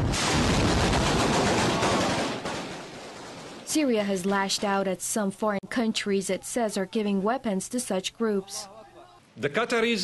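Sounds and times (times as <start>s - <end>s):
explosions during fighting in Syria: 0.0s - 3.7s
heavy gunfire during fighting in Syria: 0.0s - 3.7s
speech: 3.8s - 8.8s, 9.4s - 10.0s.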